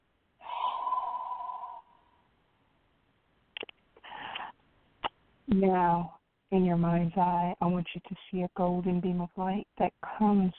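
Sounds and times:
slow exhale in a guided breathing exercise: 0.4 - 2.1
short sharp breathy bursts: 0.4 - 2.2, 4.0 - 4.6
speech: 5.5 - 10.5.

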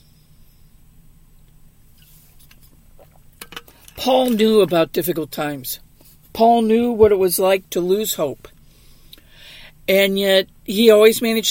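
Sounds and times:
sipping coffee from a cup: 2.0 - 3.8
speech: 4.0 - 8.5, 9.9 - 11.4.

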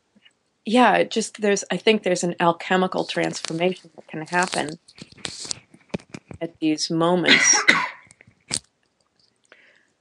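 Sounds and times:
speech: 0.7 - 5.5, 6.4 - 7.9
quiet rustling: 2.6 - 6.8, 8.0 - 9.5
person sneezing: 7.3 - 8.1.

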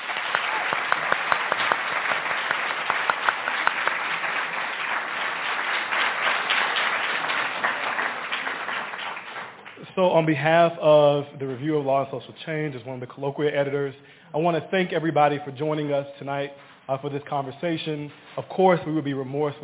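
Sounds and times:
audience applause: 0.0 - 9.8
speech: 10.0 - 19.6.

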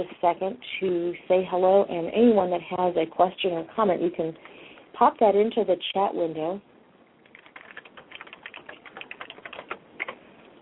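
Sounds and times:
speech: 0.0 - 6.7
typing on a computer keyboard: 7.2 - 10.2.

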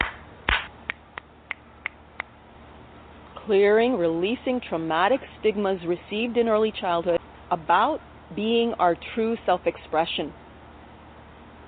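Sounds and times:
hand clapping: 0.0 - 2.3
speech: 3.5 - 10.4.

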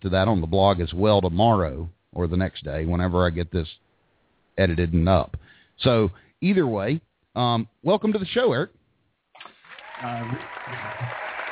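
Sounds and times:
speech: 0.0 - 3.8, 4.6 - 8.8, 10.0 - 11.2
studio audience applause: 9.4 - 11.4.

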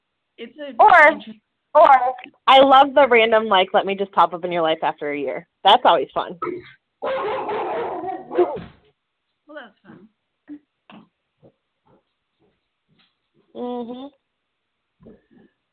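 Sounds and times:
speech: 0.4 - 7.5, 8.4 - 8.8, 13.6 - 14.2
dogs barking and whining: 7.0 - 8.7.

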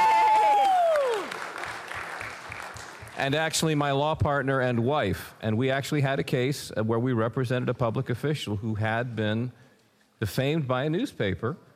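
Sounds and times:
audience applause: 0.0 - 3.3
speech: 3.2 - 9.6, 10.2 - 11.7.

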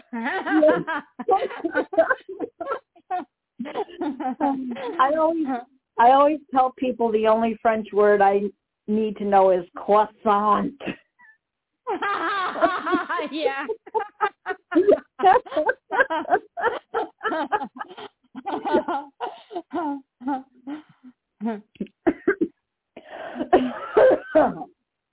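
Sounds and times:
laughter: 0.0 - 5.1, 11.9 - 20.4
speech: 0.1 - 2.5, 5.1 - 10.9
person coughing: 10.8 - 11.3, 22.0 - 22.5, 23.2 - 24.7.

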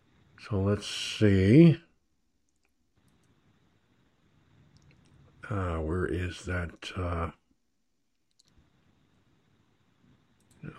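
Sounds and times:
faint steady hiss: 0.0 - 10.7
speech: 0.4 - 1.9, 5.5 - 7.4
computer mouse clicks in a web browser: 2.5 - 3.4, 4.7 - 5.2, 8.1 - 8.7, 10.4 - 10.7.

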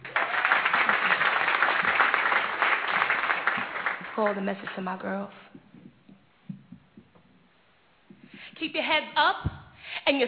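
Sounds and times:
audience applause: 0.0 - 5.1
speech: 4.2 - 5.6, 8.6 - 10.2.

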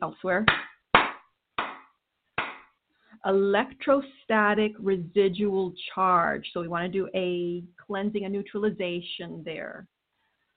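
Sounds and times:
speech: 0.0 - 0.7, 3.2 - 9.9
sharp hand claps for energy clearing: 0.4 - 2.7.

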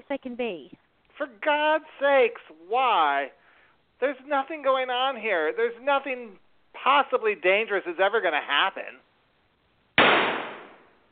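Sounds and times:
speech: 0.1 - 3.4, 4.0 - 9.0
gunshot sound effect: 10.0 - 11.0.

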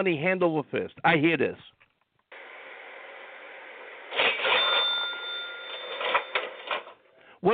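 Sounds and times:
speech: 0.0 - 1.8, 7.4 - 7.5
cash register ringing open: 4.1 - 7.0.

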